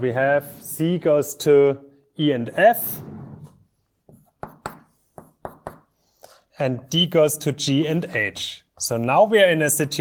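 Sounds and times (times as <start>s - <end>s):
speech: 0.0s - 3.1s, 6.6s - 9.9s
soft scrape of writing: 2.8s - 3.7s
writing by hand during a lecture: 4.0s - 6.0s.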